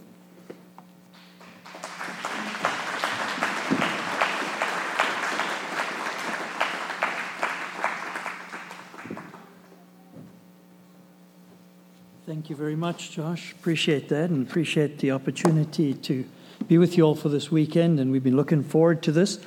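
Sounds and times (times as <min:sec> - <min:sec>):
audience applause welcoming guests at a Bible camp: 0:01.2 - 0:09.7
speech: 0:12.4 - 0:19.4.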